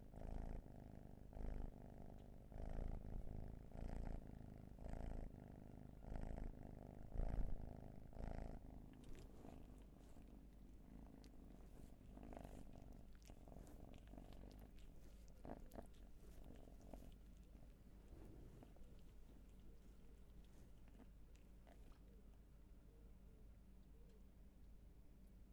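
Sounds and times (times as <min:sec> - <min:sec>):
cat purring: 0:00.0 - 0:22.8
faint rustles: 0:07.2 - 0:22.1.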